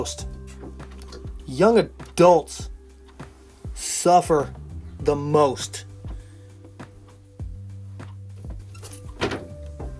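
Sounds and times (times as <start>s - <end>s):
speech: 0.0s - 0.3s, 1.5s - 2.7s, 3.8s - 5.9s
door thunks and rattles: 8.5s - 9.9s.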